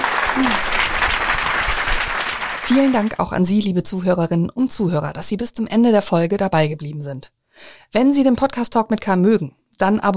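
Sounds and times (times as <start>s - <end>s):
audience applause at the close of an evening talk event: 0.0s - 3.1s
speech: 2.7s - 10.1s.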